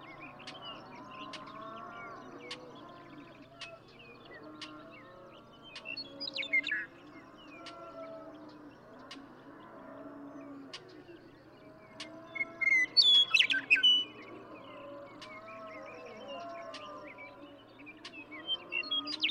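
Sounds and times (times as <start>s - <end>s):
western meadowlark song: 12.6s - 14.1s, 18.4s - 19.2s.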